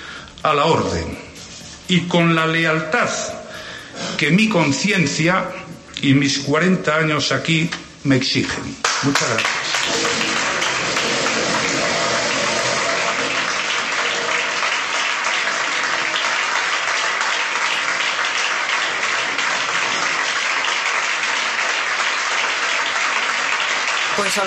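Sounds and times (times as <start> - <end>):
speech: 0.4 - 1.2, 1.9 - 3.4, 4.1 - 9.6
party members applauding: 8.8 - 24.4.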